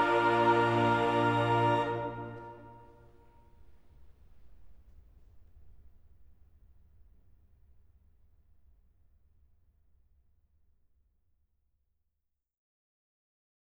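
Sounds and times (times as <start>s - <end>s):
chorale: 0.0s - 3.2s.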